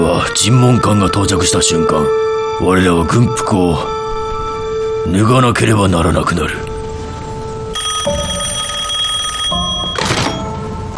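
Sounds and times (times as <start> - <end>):
speech: 0.2 - 4.1, 5.0 - 6.6
telephone bell ringing: 7.7 - 10.8.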